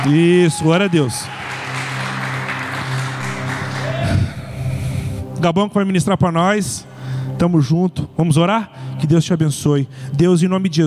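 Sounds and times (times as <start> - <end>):
speech: 0.0 - 1.4, 5.4 - 10.8
audience applause: 0.0 - 4.6.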